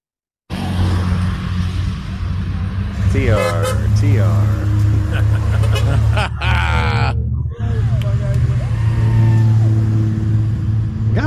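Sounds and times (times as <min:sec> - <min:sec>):
Porsche car engine revving on a street at Put-in-Bay: 0:00.5 - 0:11.2
traffic rumble: 0:00.5 - 0:11.2
speech: 0:03.2 - 0:06.5
laughter: 0:03.3 - 0:08.8.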